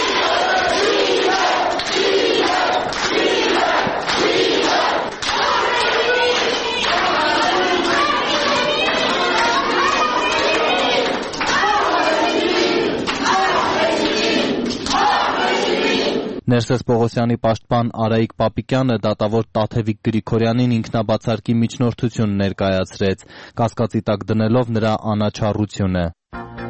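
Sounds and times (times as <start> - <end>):
supporters and friends giving a standing ovation to defendants at a court hearing: 0.0 - 16.0
people shouting: 0.0 - 16.4
speech: 16.5 - 26.6.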